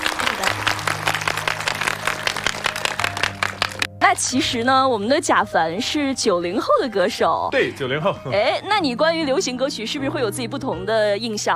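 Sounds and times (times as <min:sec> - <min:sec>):
audience applause: 0:00.0 - 0:03.9
speech: 0:04.1 - 0:11.5.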